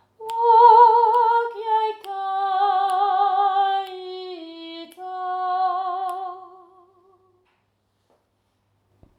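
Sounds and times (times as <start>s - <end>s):
soprano voice singing: 0.2s - 7.4s.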